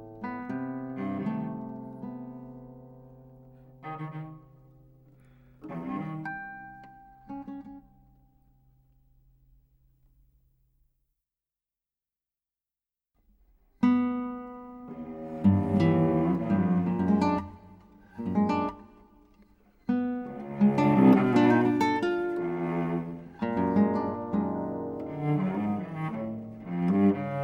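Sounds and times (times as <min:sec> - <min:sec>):
cello: 0:00.0 - 0:08.0, 0:13.8 - 0:27.4
guitar: 0:00.0 - 0:09.2, 0:13.6 - 0:27.4.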